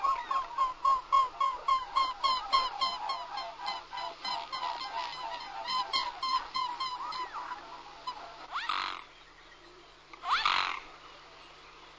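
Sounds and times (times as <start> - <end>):
mute swan honking: 0.0 - 9.1.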